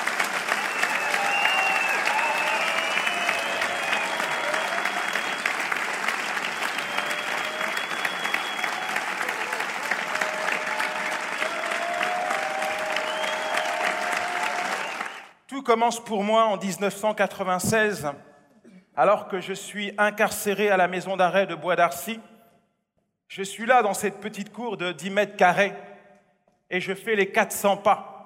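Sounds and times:
audience applause: 0:00.0 - 0:15.3
faint voices or cheers: 0:00.5 - 0:05.5, 0:06.8 - 0:15.2
speech: 0:15.7 - 0:18.3, 0:19.0 - 0:22.3, 0:23.3 - 0:25.9, 0:26.7 - 0:28.1.

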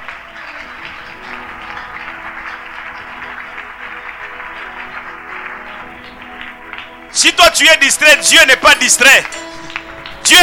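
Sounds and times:
church congregation applauding God during a French-language worship service: 0:00.0 - 0:10.4
speech: 0:07.2 - 0:09.4.

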